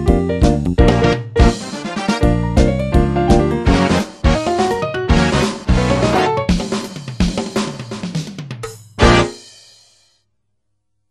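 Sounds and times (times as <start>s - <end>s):
jazz music: 0.0s - 7.0s, 9.0s - 9.5s.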